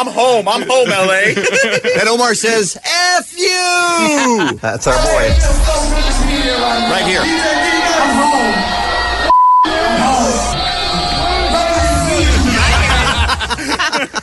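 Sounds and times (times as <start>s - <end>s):
laughter: 0.0s - 2.6s, 4.0s - 5.4s, 10.2s - 14.2s
speech: 0.0s - 8.8s
crowd booing: 4.8s - 14.0s.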